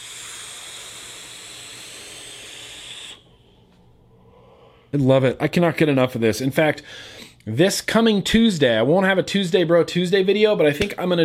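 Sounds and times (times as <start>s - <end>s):
vaping on Noisy Cricket in unregulated parallel mode: 0.0s - 3.3s
speech: 4.9s - 11.2s.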